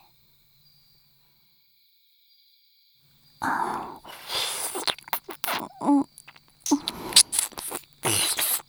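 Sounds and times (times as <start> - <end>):
ear licking: 3.4 - 8.6.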